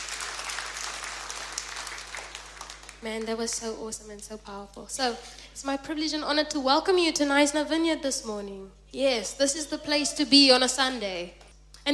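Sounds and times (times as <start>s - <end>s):
church congregation clapping for the worship team: 0.0s - 3.7s
low mains hum: 0.0s - 11.9s
speech: 3.0s - 11.9s.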